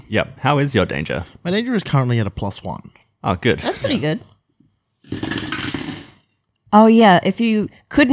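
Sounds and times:
speech: 0:00.1 - 0:04.3, 0:06.7 - 0:08.1
dice rolling through a dice tower: 0:05.1 - 0:06.2.

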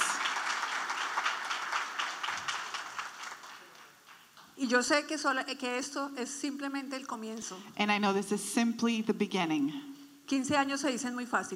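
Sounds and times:
crowd applauding: 0:00.0 - 0:04.6
speech: 0:04.6 - 0:11.5.

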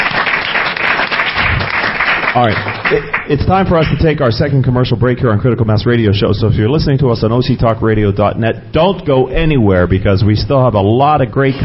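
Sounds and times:
audience applause: 0:00.0 - 0:04.0
speech: 0:02.4 - 0:11.6.

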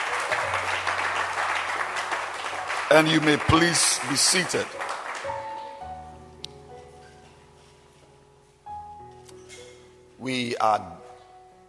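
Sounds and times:
crowd audience clapping hands: 0:00.0 - 0:05.9
speech: 0:02.9 - 0:04.9, 0:10.3 - 0:11.0.

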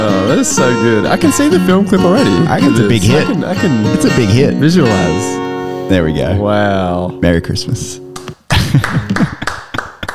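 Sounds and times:
laughter: 0:00.0 - 0:10.1
speech: 0:00.3 - 0:08.0
applause: 0:08.8 - 0:10.1.

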